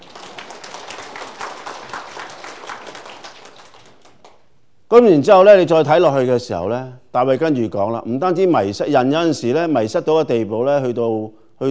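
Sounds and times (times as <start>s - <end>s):
audience applause: 0.0s - 4.4s
speech: 4.9s - 11.6s.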